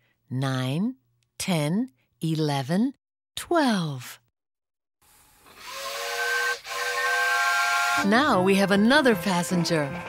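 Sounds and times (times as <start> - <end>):
speech: 0.3 - 4.2, 8.0 - 10.0
rushing hiss of steam: 5.5 - 8.2
steam train whistle: 5.7 - 10.0.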